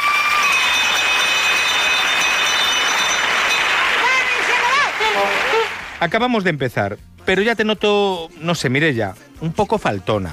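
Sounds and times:
school bell for going out to recess: 0:00.2 - 0:05.0
speech: 0:06.0 - 0:10.3.

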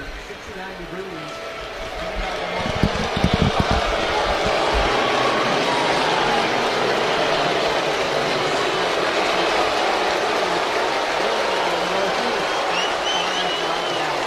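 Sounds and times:
large stadium crowd clapping: 0:00.0 - 0:14.2
heavy thumps: 0:02.5 - 0:04.9.

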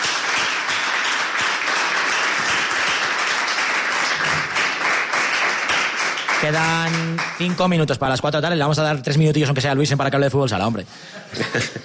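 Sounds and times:
studio applause for a guest: 0:00.0 - 0:08.2
speech: 0:06.4 - 0:11.8
laughter: 0:11.0 - 0:11.8.

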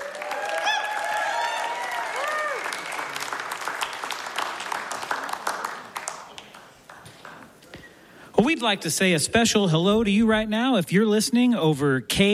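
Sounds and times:
crowd whooping and cheering: 0:00.0 - 0:03.5
audience applause: 0:00.0 - 0:07.6
speech: 0:08.4 - 0:12.3.

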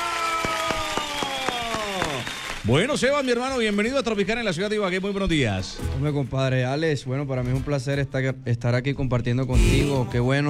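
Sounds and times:
audience applause: 0:00.0 - 0:05.2
speech: 0:02.6 - 0:10.4.

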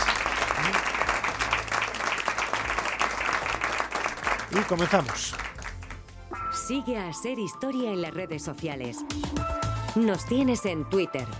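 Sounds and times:
audience applause: 0:00.0 - 0:06.0
speech: 0:04.5 - 0:05.5, 0:06.7 - 0:11.3.

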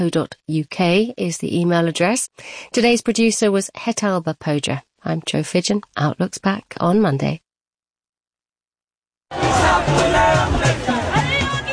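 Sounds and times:
speech: 0:00.0 - 0:07.4, 0:09.3 - 0:11.0
crowd of street protesters in India: 0:09.3 - 0:11.7.

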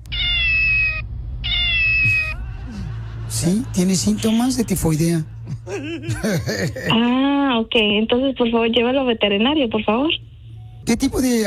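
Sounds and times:
cat meowing: 0:00.0 - 0:02.4
laughter: 0:02.0 - 0:07.2
speech: 0:03.3 - 0:10.3, 0:10.9 - 0:11.4.

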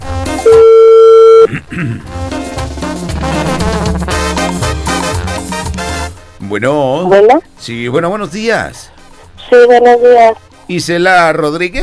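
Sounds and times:
phone ringback tone on an outgoing call: 0:00.3 - 0:01.5
music with voices: 0:01.7 - 0:11.8
speech: 0:06.5 - 0:11.8.

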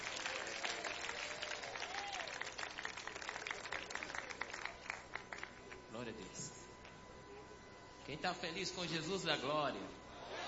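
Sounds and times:
audience applauding: 0:00.0 - 0:05.7
speech: 0:06.0 - 0:06.6, 0:08.1 - 0:10.0.

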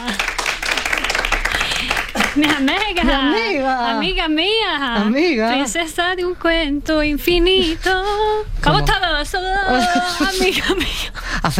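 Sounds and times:
applause: 0:00.0 - 0:03.4
speech: 0:02.4 - 0:11.5.

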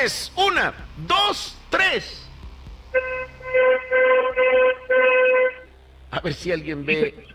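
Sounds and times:
speech: 0:00.0 - 0:02.2, 0:06.1 - 0:07.3
car horn honking: 0:02.9 - 0:05.7.

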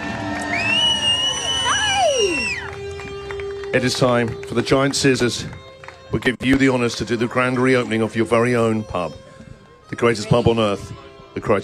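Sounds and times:
crowd cheering: 0:00.0 - 0:04.0
applause: 0:00.0 - 0:06.9
speech: 0:03.7 - 0:09.2, 0:09.9 - 0:11.6.

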